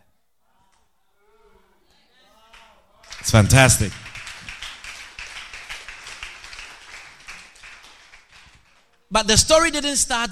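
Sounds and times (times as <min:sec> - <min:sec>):
crowd clapping: 0:02.5 - 0:09.1
speech: 0:03.3 - 0:04.0, 0:09.2 - 0:10.3.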